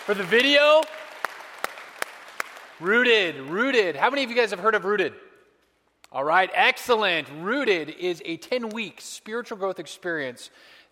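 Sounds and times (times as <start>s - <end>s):
audience applause: 0.0s - 3.2s
speech: 0.1s - 1.0s, 2.8s - 5.2s, 6.1s - 10.9s.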